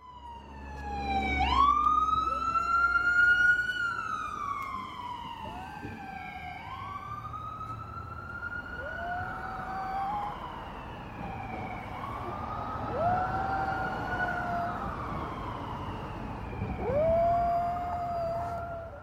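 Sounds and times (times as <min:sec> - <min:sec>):
wailing siren: 0:00.0 - 0:19.0
Havanese dog howling along with a siren: 0:08.8 - 0:10.5, 0:12.8 - 0:15.2, 0:16.7 - 0:19.0.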